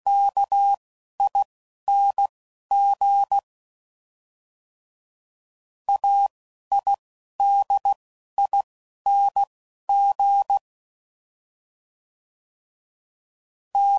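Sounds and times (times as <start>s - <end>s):
Morse code groups at 10 WPM: 0.1s - 3.4s, 5.9s - 10.6s, 13.8s - 13.9s.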